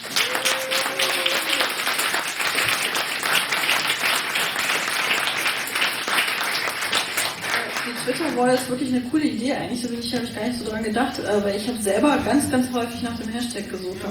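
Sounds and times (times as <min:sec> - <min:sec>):
audience applause: 0:00.0 - 0:08.8
speech: 0:08.4 - 0:14.0.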